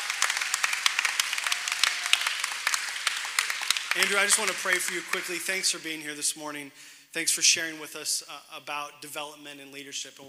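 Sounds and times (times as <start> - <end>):
audience applause: 0.0 - 5.8
speech: 4.0 - 10.2.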